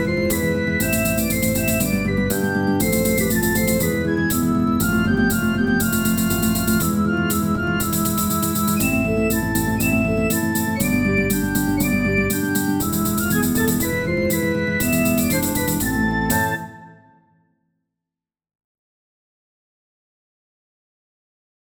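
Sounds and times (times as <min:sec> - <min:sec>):
Greek dance music: 0:00.0 - 0:16.8.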